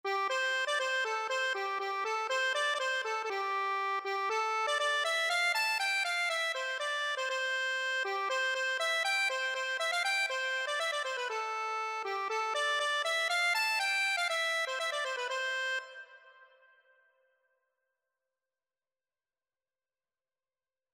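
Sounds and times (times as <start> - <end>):
accordion: 0.0 - 16.8.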